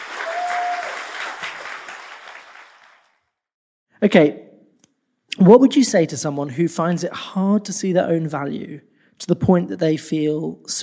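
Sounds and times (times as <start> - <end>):
audience applause: 0.0 - 3.2
speech: 4.0 - 4.4, 5.4 - 10.8.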